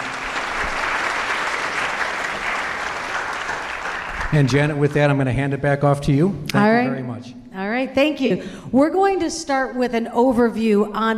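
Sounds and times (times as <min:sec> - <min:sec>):
audience applause: 0:00.0 - 0:05.4
speech: 0:04.3 - 0:11.1.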